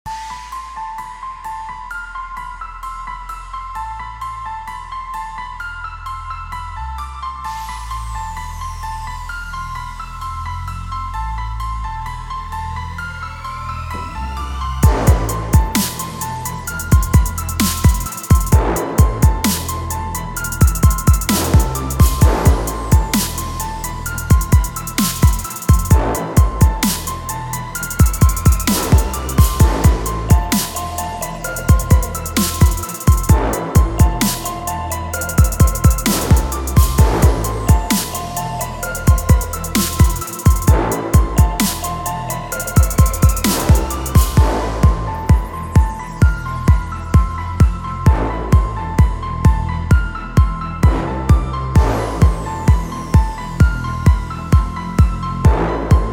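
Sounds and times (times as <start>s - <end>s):
experimental sport hip hop music: 13.9s - 56.1s.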